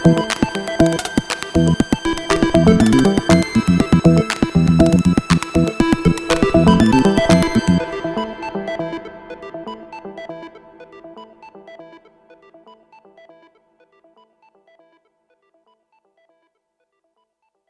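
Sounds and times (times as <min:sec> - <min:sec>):
noisy industrial acid-rave music on synthesizers: 0:00.0 - 0:09.6.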